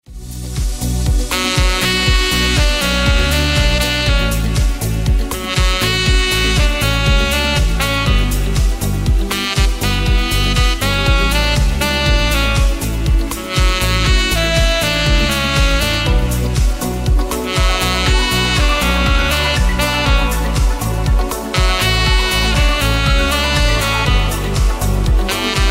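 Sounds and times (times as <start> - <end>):
saxophone cover: 0.1 - 25.6.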